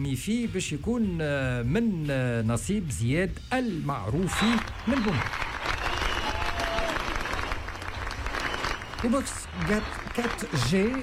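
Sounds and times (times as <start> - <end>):
speech: 0.0 - 5.5, 9.0 - 11.0
audience applause for a prize winner: 4.3 - 11.0.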